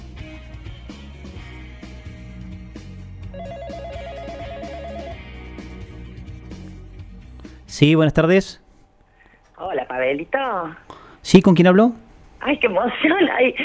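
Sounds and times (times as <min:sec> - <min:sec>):
music: 0:00.0 - 0:08.6
telephone trill of an incoming listener call: 0:03.4 - 0:05.3
speech: 0:07.8 - 0:08.6, 0:10.1 - 0:13.6.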